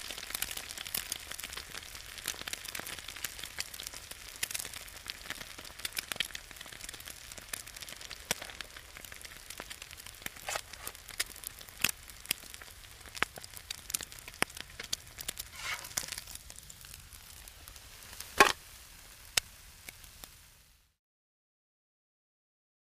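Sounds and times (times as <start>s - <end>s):
eggs frying on a griddle: 0.0s - 21.0s
egg cracking: 8.0s - 18.6s.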